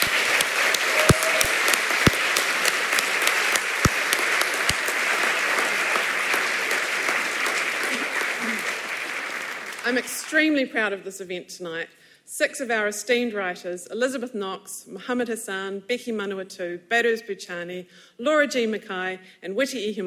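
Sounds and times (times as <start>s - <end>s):
audience round of applause for the writers: 0.0s - 10.2s
speech: 9.9s - 20.0s.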